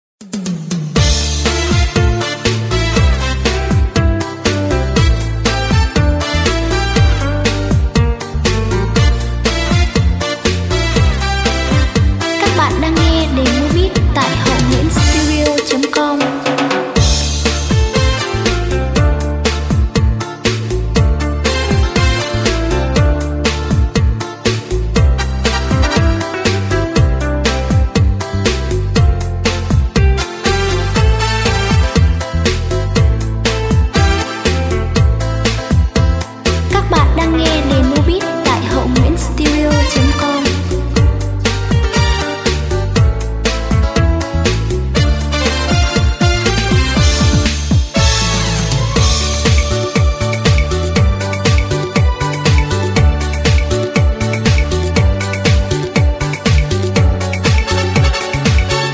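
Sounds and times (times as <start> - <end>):
music beat playback: 0.2 - 58.9.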